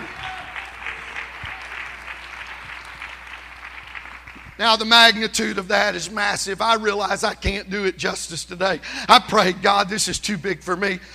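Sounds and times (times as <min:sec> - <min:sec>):
audience clapping hands: 0:00.0 - 0:05.3
speech: 0:04.6 - 0:11.1.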